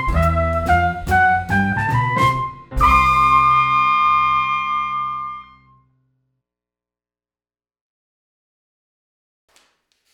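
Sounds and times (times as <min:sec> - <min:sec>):
lead trumpet: 0:00.0 - 0:05.6.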